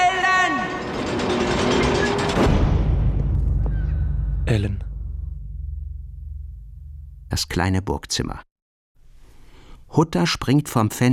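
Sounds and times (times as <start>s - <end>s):
large gate slamming shut: 0.0s - 4.5s
speech: 4.5s - 4.8s, 7.4s - 8.5s, 9.9s - 11.1s.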